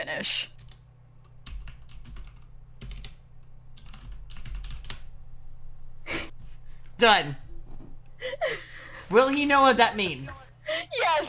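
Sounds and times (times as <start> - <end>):
speech: 0.0 - 0.5, 7.0 - 7.4, 8.2 - 10.4
typing a message on a computer keyboard: 1.4 - 3.2, 3.8 - 5.1.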